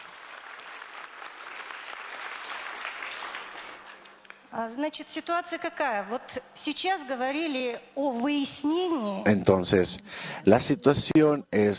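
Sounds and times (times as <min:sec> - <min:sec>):
audience applause: 0:00.0 - 0:04.2
speech: 0:04.5 - 0:11.7.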